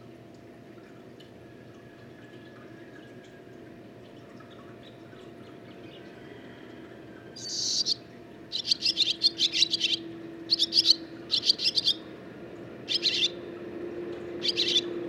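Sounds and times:
barn swallow twittering song: 0:07.4 - 0:12.1, 0:12.8 - 0:13.4, 0:14.4 - 0:15.0.

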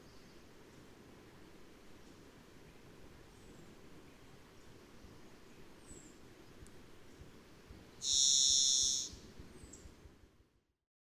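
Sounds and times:
varied thrush buzzy whistle: 0:08.0 - 0:09.1.

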